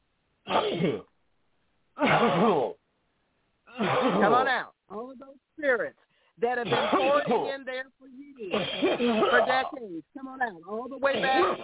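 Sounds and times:
person coughing: 0:00.5 - 0:01.1, 0:02.0 - 0:02.8, 0:03.7 - 0:04.5, 0:06.6 - 0:07.5, 0:08.5 - 0:09.8, 0:11.1 - 0:11.6
speech: 0:00.8 - 0:01.1, 0:02.2 - 0:02.7, 0:05.6 - 0:11.6.

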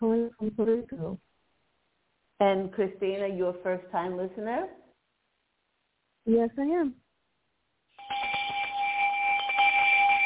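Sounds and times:
speech: 0:00.0 - 0:01.3, 0:02.4 - 0:04.8, 0:06.3 - 0:07.0
bell ringing: 0:08.0 - 0:10.2.

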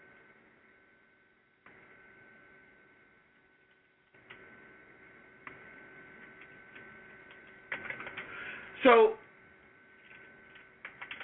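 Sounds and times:
keyboard typing: 0:05.4 - 0:08.4, 0:10.0 - 0:11.2
speech: 0:08.8 - 0:09.2.

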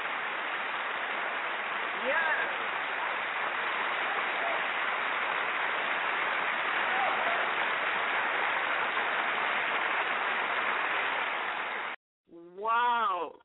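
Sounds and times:
audience applause: 0:00.0 - 0:12.0.

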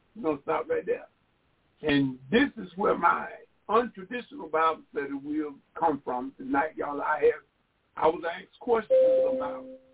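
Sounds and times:
speech: 0:00.2 - 0:01.2, 0:01.8 - 0:09.9
computer notification chime: 0:08.9 - 0:09.9.

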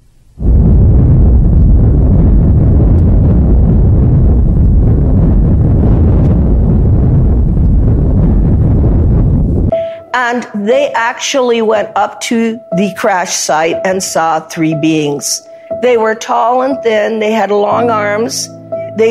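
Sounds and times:
atomic bomb explosion roar: 0:00.4 - 0:09.8
speech: 0:10.2 - 0:19.1.

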